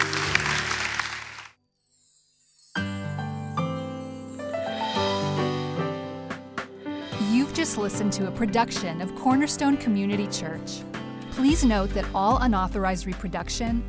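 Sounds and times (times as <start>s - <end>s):
audience clapping: 0.0s - 1.6s
keyboard music with held chords: 2.5s - 13.8s
speech: 7.6s - 13.8s.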